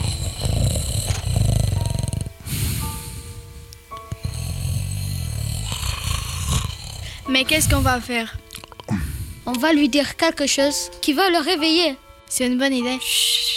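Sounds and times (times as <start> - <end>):
wild boar snoring: 0.0 - 9.5
speech: 7.3 - 8.4, 9.5 - 13.5.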